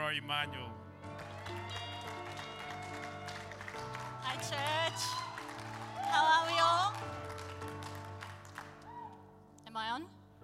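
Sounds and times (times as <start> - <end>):
speech: 0.1 - 0.8, 4.3 - 5.2, 6.1 - 7.2, 9.8 - 10.2
church congregation applause welcoming a young adult leader to the stage: 1.0 - 9.2.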